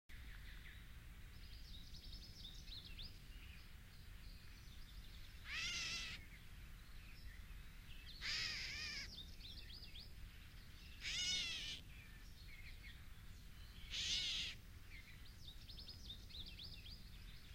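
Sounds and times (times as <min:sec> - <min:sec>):
gray catbird song of jumbled squeaky and slurred whistled phrases: 0:00.2 - 0:17.5.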